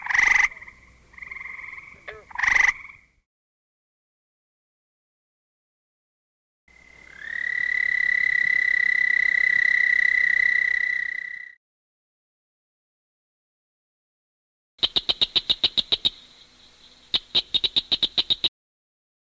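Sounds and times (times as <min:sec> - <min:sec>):
frogs croaking in nature: 0:00.0 - 0:03.2, 0:06.7 - 0:11.6, 0:14.8 - 0:18.5.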